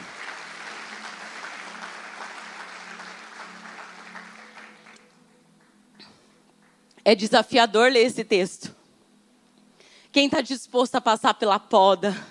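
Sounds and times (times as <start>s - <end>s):
audience applauding: 0.0s - 5.8s
speech: 7.1s - 8.7s, 10.2s - 12.2s.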